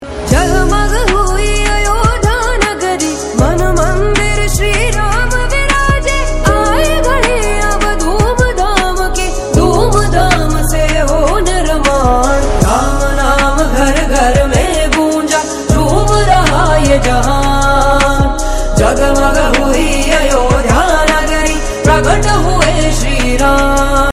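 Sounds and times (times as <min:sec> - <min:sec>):
devotional bhajan song: 0:00.0 - 0:24.1.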